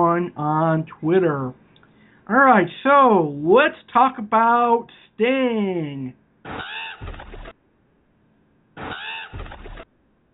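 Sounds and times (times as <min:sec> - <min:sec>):
speech: 0:00.2 - 0:01.6, 0:02.3 - 0:07.2
crow cawing sound effect: 0:06.6 - 0:07.1, 0:08.8 - 0:09.4.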